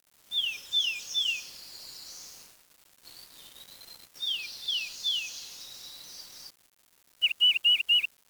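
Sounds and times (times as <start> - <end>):
bird whistled song: 0.3 - 2.4, 3.1 - 6.5, 7.2 - 8.1.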